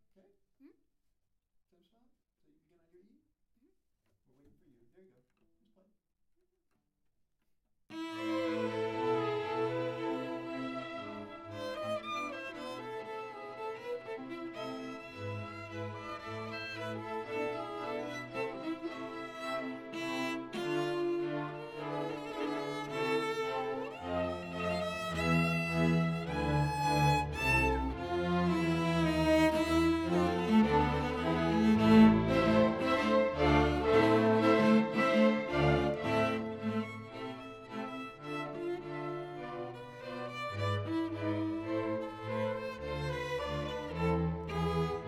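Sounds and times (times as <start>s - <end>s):
cello concerto: 7.9s - 45.0s.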